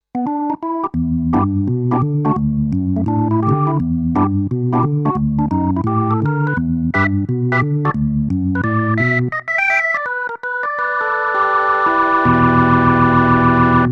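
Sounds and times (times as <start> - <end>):
Kawai MP7SE tonewheel organ: 0.2 - 13.8.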